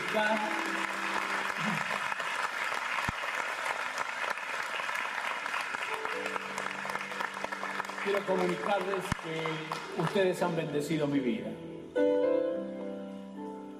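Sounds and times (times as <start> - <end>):
sizable audience applause: 0.0 - 10.5
speech: 0.2 - 0.8, 8.1 - 12.2.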